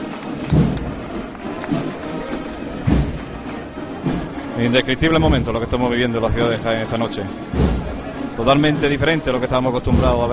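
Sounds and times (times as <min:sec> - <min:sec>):
crowd applause in the street: 0:00.0 - 0:04.6
speech: 0:04.6 - 0:07.8, 0:08.4 - 0:10.3.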